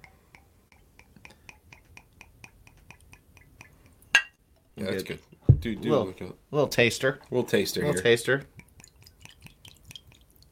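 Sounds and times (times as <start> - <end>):
speech: 4.8 - 8.6
whiskey being poured into glass: 8.6 - 10.5.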